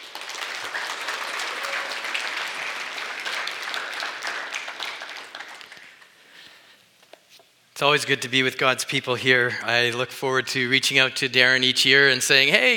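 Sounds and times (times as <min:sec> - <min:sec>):
audience applause: 0:00.0 - 0:06.2
speech: 0:07.8 - 0:12.7.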